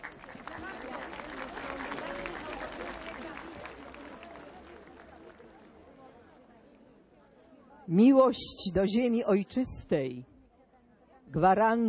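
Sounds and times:
audience applause: 0.0s - 5.4s
speech: 7.9s - 10.3s, 11.4s - 11.8s.

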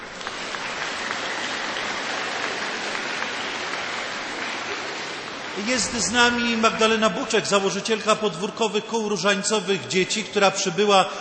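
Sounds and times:
audience applause: 0.0s - 8.4s
speech: 5.6s - 11.1s.

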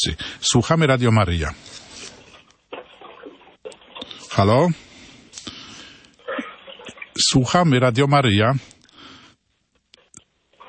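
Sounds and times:
speech: 0.0s - 1.8s, 4.4s - 4.9s, 7.2s - 8.8s
breathing on a phone line: 0.2s - 0.4s, 4.0s - 6.7s, 8.6s - 9.5s.

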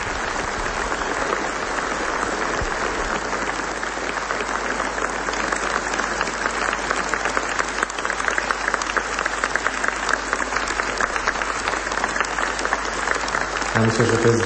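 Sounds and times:
audience applause: 0.0s - 14.4s
speech: 13.9s - 14.4s.

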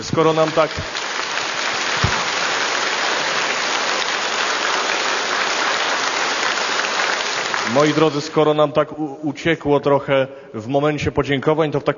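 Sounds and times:
crowd applause for a band: 0.0s - 8.4s
speech: 0.1s - 1.1s, 7.7s - 11.9s.

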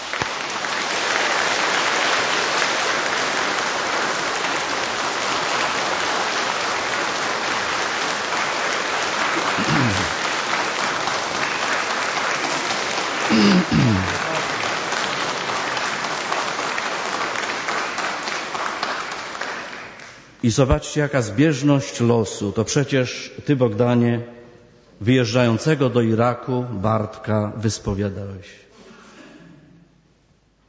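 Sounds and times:
audience applause: 0.0s - 20.3s
speech: 20.5s - 24.4s, 25.0s - 28.6s.

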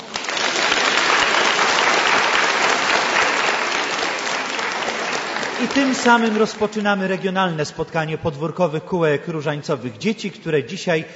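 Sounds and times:
children applauding: 0.0s - 7.0s
speech: 5.6s - 11.1s.

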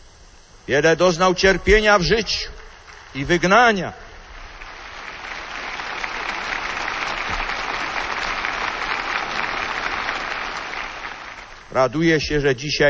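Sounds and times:
speech: 0.7s - 4.0s, 11.7s - 12.8s
audience applause: 2.8s - 12.0s.

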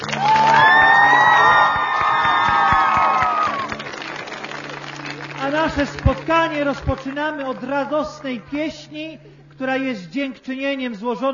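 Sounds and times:
gathered crowd cheering and whooping: 0.0s - 4.8s
scattered clapping: 0.0s - 8.2s
speech: 5.8s - 11.3s.

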